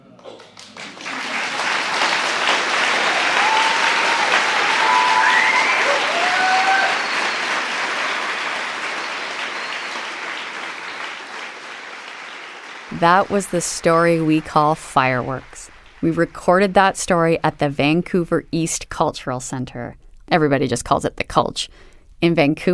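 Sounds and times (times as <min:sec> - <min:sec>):
audience applause: 0:00.0 - 0:16.1
speech: 0:13.0 - 0:22.7.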